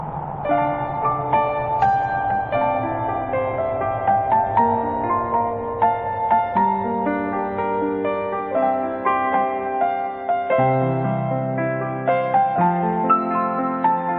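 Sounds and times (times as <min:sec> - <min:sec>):
devotional piano piece: 0:00.0 - 0:14.1.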